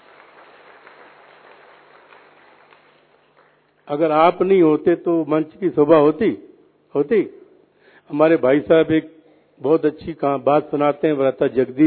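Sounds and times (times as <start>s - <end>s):
audience applause: 0.0s - 3.6s
speech: 3.9s - 7.4s, 8.1s - 11.8s.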